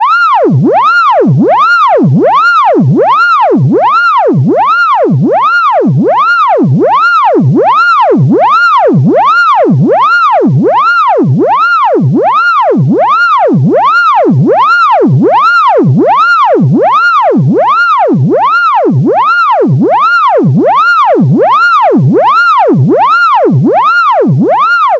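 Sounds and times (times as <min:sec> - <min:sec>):
electronic siren: 0:00.0 - 0:24.9.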